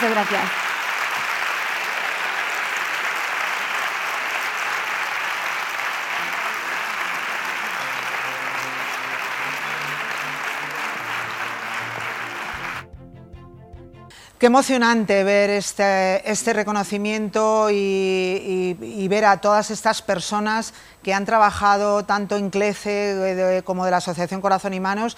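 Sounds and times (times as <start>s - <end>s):
audience applause: 0.0s - 12.9s
speech: 0.1s - 0.7s, 14.4s - 25.1s.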